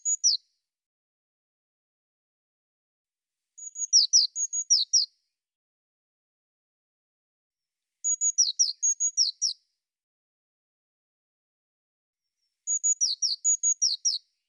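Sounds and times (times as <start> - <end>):
Eurasian blue tit thin high whistled notes: 0.0 - 0.4, 3.6 - 5.2, 8.0 - 9.6, 12.3 - 14.3.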